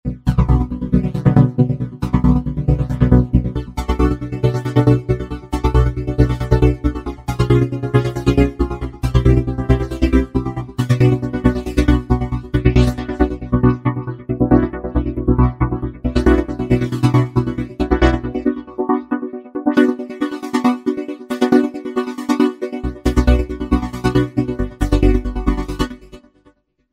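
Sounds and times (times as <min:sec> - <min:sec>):
Roland V-Synth synthesizer: 0:00.0 - 0:26.6.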